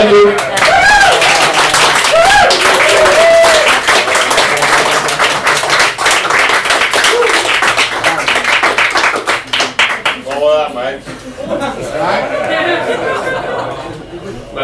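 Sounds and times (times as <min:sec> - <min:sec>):
audience applause: 0:00.0 - 0:10.4
cheers and whoops: 0:00.4 - 0:03.8, 0:07.0 - 0:07.5
laughter: 0:11.2 - 0:14.5.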